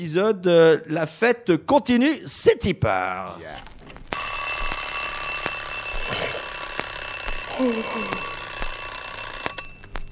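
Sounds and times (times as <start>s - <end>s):
speech: 0.0s - 3.7s, 7.6s - 8.3s
alarm clock ringing: 4.2s - 10.0s.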